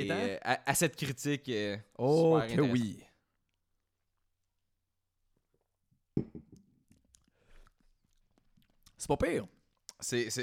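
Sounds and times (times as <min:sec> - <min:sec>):
speech: 0:00.0 - 0:03.1, 0:09.0 - 0:10.4
chalice glass knocking against lips: 0:06.2 - 0:06.7.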